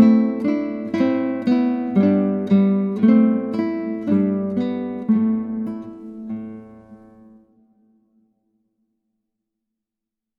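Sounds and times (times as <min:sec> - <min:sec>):
Celtic dance on guitar: 0:00.0 - 0:07.4.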